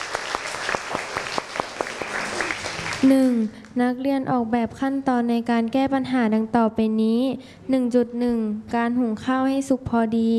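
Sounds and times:
classroom group clapping for a student group: 0:00.0 - 0:03.8
speech: 0:03.0 - 0:10.3.

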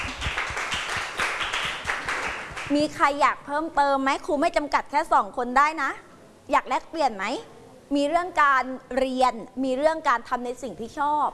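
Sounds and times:
classroom students clapping for a classmate: 0:00.0 - 0:02.8
speech: 0:02.7 - 0:11.3.

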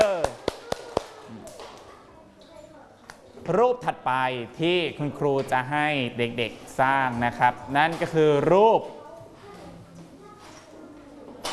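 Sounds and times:
classroom applause: 0:00.0 - 0:01.2
speech: 0:03.5 - 0:09.0.

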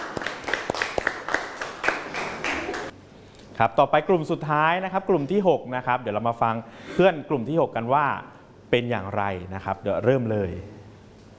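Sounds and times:
applause for a group: 0:00.0 - 0:02.9
speech: 0:03.6 - 0:10.8.

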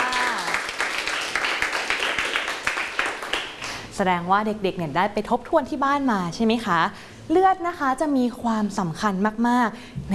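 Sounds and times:
children applauding in a classroom: 0:00.0 - 0:03.7
speech: 0:04.0 - 0:10.1.

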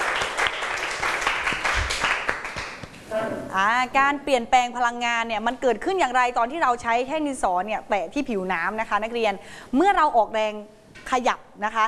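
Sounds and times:
classroom applause: 0:00.0 - 0:03.0
speech: 0:03.6 - 0:11.8.

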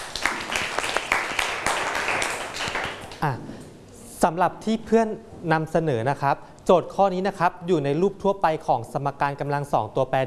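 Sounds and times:
classroom of students clapping: 0:00.0 - 0:03.2
speech: 0:03.2 - 0:03.5, 0:04.2 - 0:10.2.

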